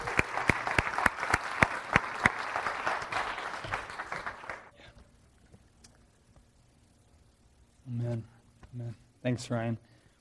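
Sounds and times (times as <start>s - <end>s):
congregation applauding a guest preacher: 0.0s - 4.7s
speech: 9.3s - 10.1s.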